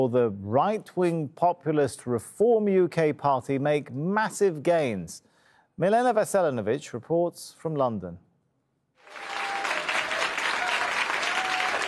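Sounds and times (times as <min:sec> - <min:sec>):
speech: 0:00.0 - 0:08.3
audience applause: 0:09.0 - 0:11.8.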